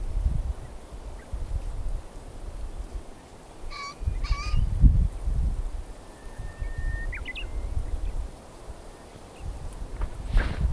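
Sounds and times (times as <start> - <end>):
Japanese bush warbler song: 0.0 - 10.7
brief rustle: 9.7 - 10.7.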